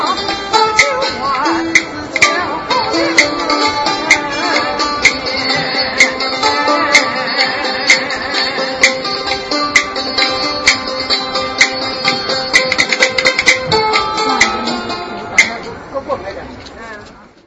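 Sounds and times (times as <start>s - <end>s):
zither from Hangzhou China: 0.0s - 17.1s.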